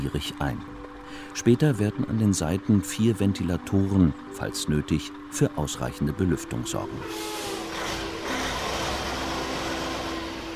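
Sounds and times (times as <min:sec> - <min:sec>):
speech: 0:00.0 - 0:07.4
livestock transport truck driving off: 0:00.0 - 0:10.5.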